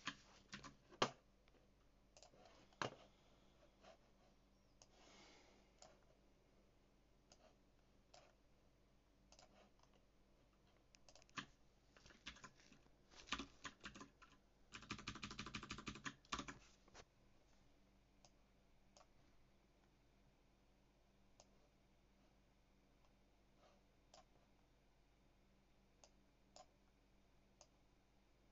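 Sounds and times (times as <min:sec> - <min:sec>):
HyperX Alloy FPS mechanical keyboard with Cherry MX Blue keys typing: 0:00.0 - 0:00.8, 0:11.1 - 0:12.6, 0:13.2 - 0:16.6.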